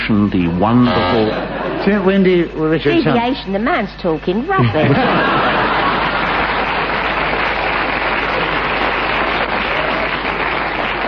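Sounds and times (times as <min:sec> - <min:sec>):
speech: 0:00.1 - 0:05.6
laughter: 0:00.6 - 0:03.4, 0:04.5 - 0:11.0
studio audience applause: 0:04.9 - 0:11.0.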